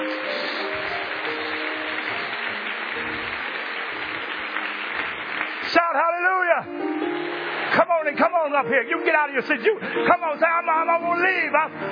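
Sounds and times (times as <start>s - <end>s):
audience applauding: 0.0s - 10.3s
speech: 5.7s - 7.1s, 7.7s - 11.9s.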